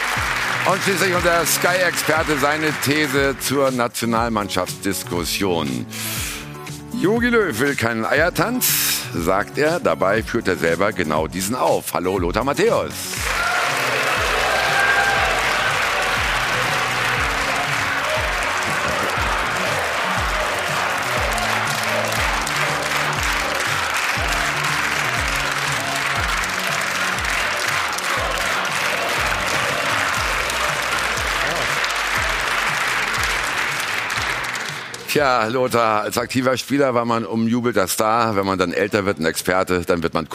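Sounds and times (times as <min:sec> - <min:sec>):
studio audience applause for arriving guest: 0:00.0 - 0:03.9, 0:13.0 - 0:36.0
speech: 0:00.7 - 0:06.3, 0:06.9 - 0:13.3, 0:35.1 - 0:40.3.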